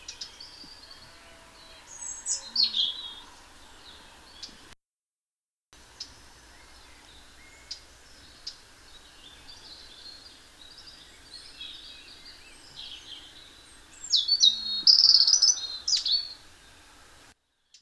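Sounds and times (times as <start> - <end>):
European robin song: 0.0 - 4.8, 5.8 - 16.9.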